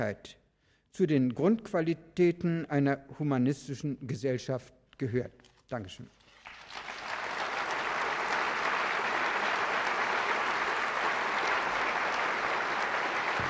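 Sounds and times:
speech: 0.0s - 6.2s
audience applause: 6.4s - 13.4s.

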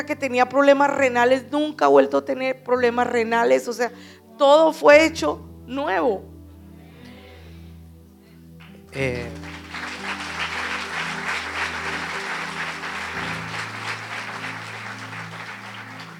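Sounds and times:
speech: 0.0s - 6.3s, 8.9s - 9.5s
audience applause: 9.0s - 16.1s.

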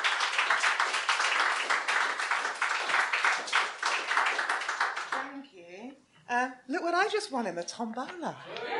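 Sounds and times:
audience applause: 0.0s - 5.3s
speech: 6.4s - 8.7s.

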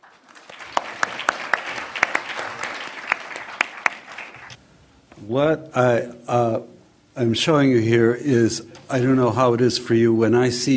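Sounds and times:
lecture audience applause welcoming a professor: 0.0s - 4.6s
speech: 5.3s - 10.7s.

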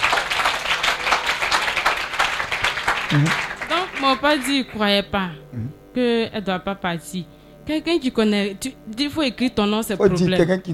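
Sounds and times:
congregation clapping in worship acclaiming God: 0.0s - 4.8s
speech: 3.1s - 10.7s.

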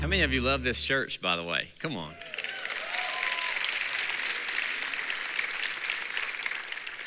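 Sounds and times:
speech: 0.1s - 2.3s
audience clapping: 1.9s - 7.0s.

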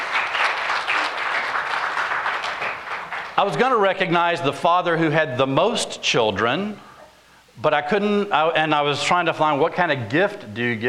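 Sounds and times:
audience applause: 0.0s - 3.6s
speech: 3.4s - 6.9s, 7.6s - 10.8s.

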